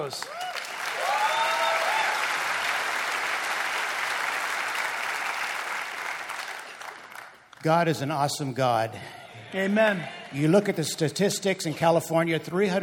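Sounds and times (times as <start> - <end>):
speech: 0.0 - 0.5, 7.6 - 12.8
large indoor crowd applauding: 0.0 - 7.6
person cheering: 0.2 - 2.4
laughter: 8.9 - 11.0.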